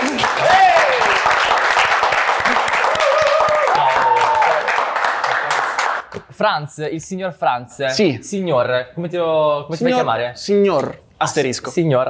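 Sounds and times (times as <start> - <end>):
applause: 0.0 - 6.1
speech: 6.4 - 12.0.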